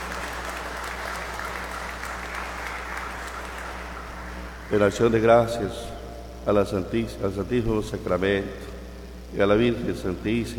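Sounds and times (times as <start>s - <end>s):
audience applause: 0.0s - 4.8s
speech: 4.7s - 8.7s, 9.3s - 10.5s.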